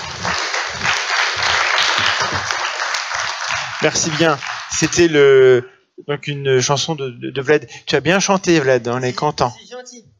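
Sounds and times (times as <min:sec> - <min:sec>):
applause: 0:00.0 - 0:05.3
speech: 0:03.8 - 0:10.1.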